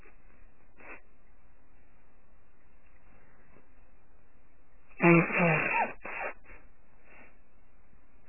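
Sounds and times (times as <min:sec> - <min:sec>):
woman sneezing: 0:05.0 - 0:06.4.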